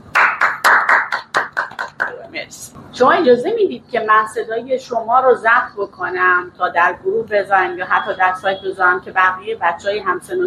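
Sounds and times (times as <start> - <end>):
hand clapping: 0.0 - 2.2
speech: 2.4 - 10.4.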